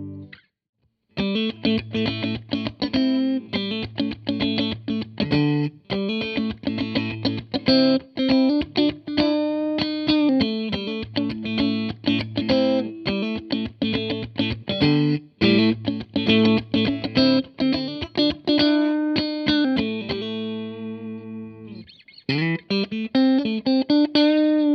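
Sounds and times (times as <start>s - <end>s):
clean electric guitar on middle and neck pickups: 0.0s - 0.5s, 1.2s - 24.7s.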